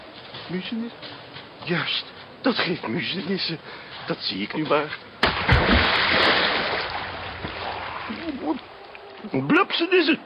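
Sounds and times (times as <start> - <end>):
speech: 0.5 - 6.5, 8.4 - 8.7, 9.3 - 10.2
water splashing as someone moves in a public pond at night: 5.2 - 9.2.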